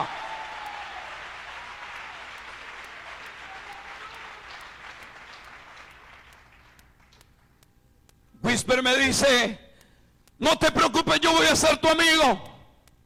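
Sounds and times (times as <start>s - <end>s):
audience applause: 0.0s - 7.2s
speech: 8.6s - 9.6s, 10.4s - 12.5s.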